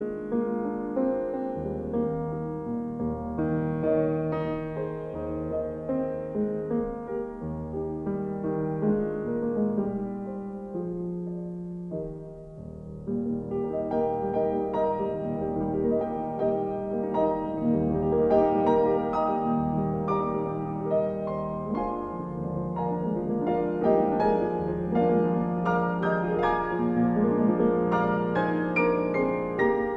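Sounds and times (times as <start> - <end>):
piano lullaby: 0.0 - 29.9.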